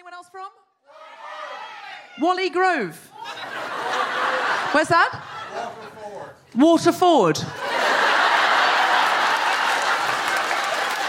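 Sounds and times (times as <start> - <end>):
speech: 0.2 - 1.0, 2.2 - 3.1, 4.4 - 5.3, 6.5 - 7.6
laughter: 3.1 - 6.1, 7.5 - 11.0
audience applause: 7.7 - 11.0.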